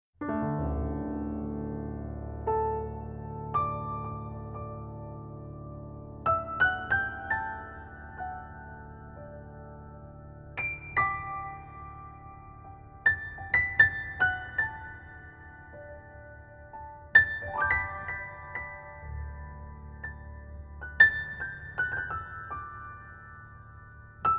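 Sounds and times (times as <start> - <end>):
soft candlelight piano instrumental: 0.2 - 24.3.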